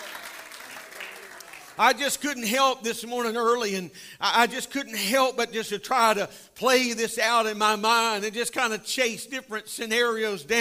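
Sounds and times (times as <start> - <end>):
audience clapping hands: 0.0 - 1.9
speech: 1.8 - 10.5.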